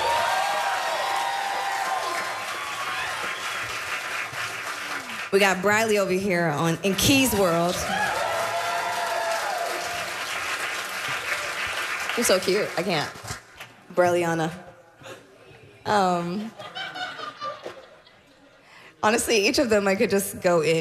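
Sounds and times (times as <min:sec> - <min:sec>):
crowd applauding: 0:00.0 - 0:05.6, 0:07.1 - 0:13.8
speech: 0:05.3 - 0:08.2, 0:12.2 - 0:13.2, 0:14.0 - 0:14.6, 0:15.9 - 0:16.6, 0:19.0 - 0:20.8
laughter: 0:16.4 - 0:18.6.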